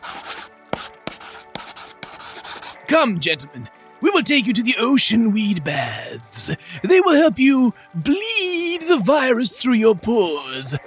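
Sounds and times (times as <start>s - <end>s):
pen scratching across paper signing papers: 0.0s - 2.8s
sharp taps: 0.3s - 2.5s
speech: 2.9s - 10.8s.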